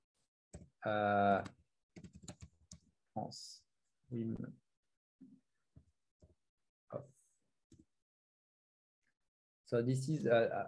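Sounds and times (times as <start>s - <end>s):
speech: 0.8s - 1.6s, 3.2s - 4.6s, 6.9s - 7.2s, 9.7s - 10.6s
computer keyboard clicks typing a search: 1.3s - 2.9s.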